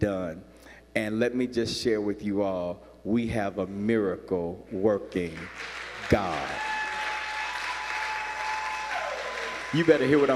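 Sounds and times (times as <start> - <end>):
speech: 0.0 - 6.7, 9.7 - 10.3
audience clapping: 5.2 - 10.3.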